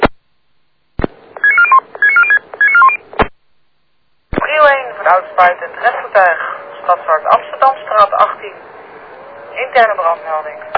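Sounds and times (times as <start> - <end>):
low hum: 0.0 - 10.7
keypad tones of a phone number being dialed: 1.4 - 3.0
speech: 5.2 - 8.8, 9.6 - 10.7.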